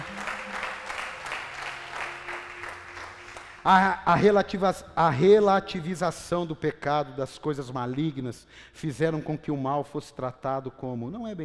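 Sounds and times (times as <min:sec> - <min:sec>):
audience applause: 0:00.0 - 0:04.2
speech: 0:03.6 - 0:11.4.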